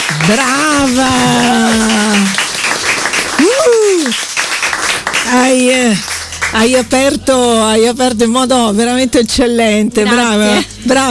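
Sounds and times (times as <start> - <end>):
audience applause: 0.0 - 7.0
speech: 0.2 - 1.9, 5.5 - 11.0.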